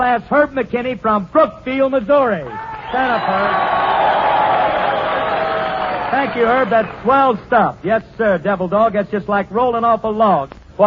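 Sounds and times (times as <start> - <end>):
speech: 0.0 - 3.8, 6.1 - 10.8
studio audience applause: 2.7 - 7.5.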